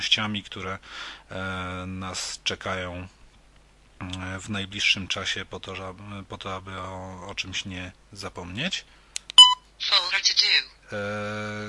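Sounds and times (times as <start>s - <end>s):
speech: 0.0s - 3.2s, 4.0s - 9.0s, 9.8s - 11.6s
high-pitched electronic beeps from a device: 9.4s - 9.6s.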